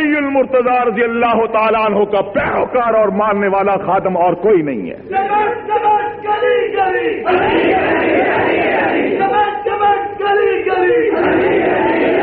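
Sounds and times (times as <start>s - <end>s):
speech: 0.4s - 9.4s
large crowd chanting a slogan loudly: 6.4s - 9.6s, 10.4s - 12.2s.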